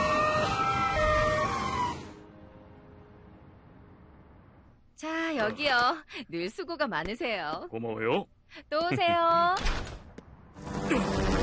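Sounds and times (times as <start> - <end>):
fire truck siren: 0.0 - 2.2
speech: 5.0 - 9.9.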